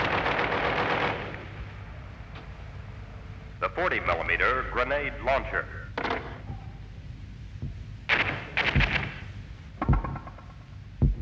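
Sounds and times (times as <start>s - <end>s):
caliber .50 machine gun firing: 0.0s - 1.5s, 8.1s - 9.3s
speech: 3.8s - 5.8s.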